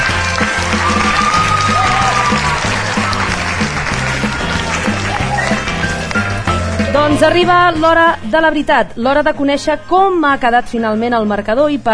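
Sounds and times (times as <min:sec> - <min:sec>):
audience applause: 0:00.0 - 0:06.5
rhythmic musical beat: 0:00.0 - 0:07.8
speech: 0:07.1 - 0:11.9.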